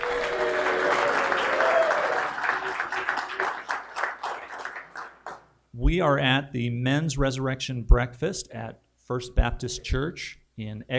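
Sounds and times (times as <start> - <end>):
people cheering: 0.0 - 5.1
live audience applauding: 0.0 - 5.5
speech: 5.9 - 10.9.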